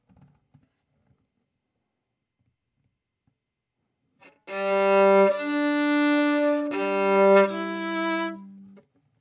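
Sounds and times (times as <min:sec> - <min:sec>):
violin: 0:04.2 - 0:08.8.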